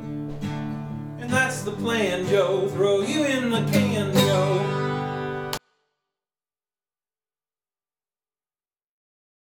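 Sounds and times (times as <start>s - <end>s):
banjo music: 0.3s - 5.6s.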